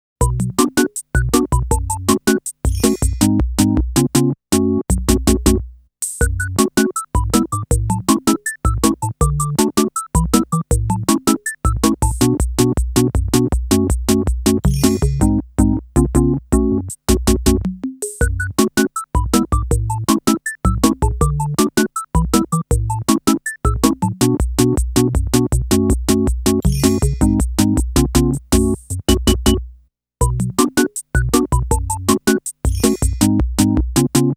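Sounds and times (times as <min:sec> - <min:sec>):
instrumental music: 0:00.2 - 0:34.3.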